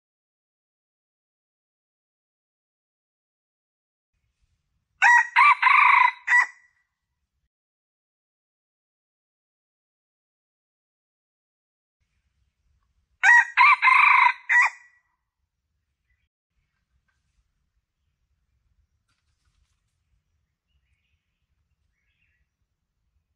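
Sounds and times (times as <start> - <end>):
Red junglefowl crowing: 5.0 - 6.6, 13.2 - 14.9.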